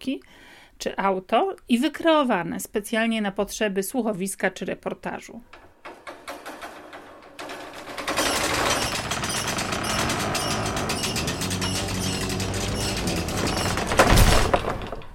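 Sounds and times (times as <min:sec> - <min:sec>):
speech: 0:00.0 - 0:05.6
drawbridge ratcheting chain and gear mechanism grinding: 0:06.9 - 0:14.1.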